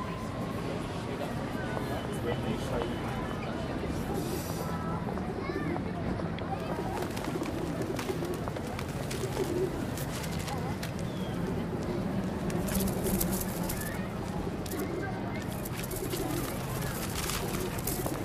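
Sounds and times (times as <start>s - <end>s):
busy city noise in London's West End: 0.0s - 18.2s
voices: 0.0s - 18.2s
pigeons cooing in London's West End: 6.8s - 18.2s.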